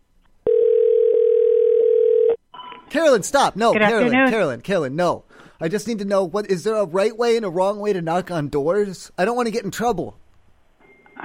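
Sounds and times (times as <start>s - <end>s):
telephone dial tone: 0.5s - 2.8s
speech: 2.9s - 10.2s.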